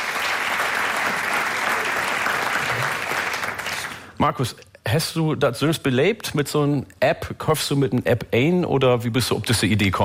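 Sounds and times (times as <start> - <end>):
audience clapping: 0.0 - 4.2
speech: 4.2 - 10.0.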